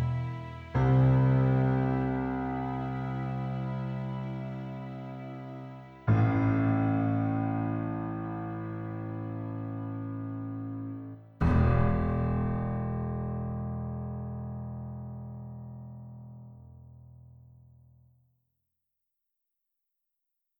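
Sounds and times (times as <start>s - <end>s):
dramatic underscore music: 0.0s - 13.8s.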